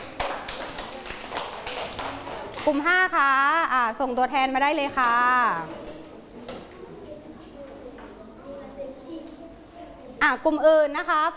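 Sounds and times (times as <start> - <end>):
class clapping: 0.0 - 2.9
speech: 2.6 - 5.8, 10.2 - 11.3.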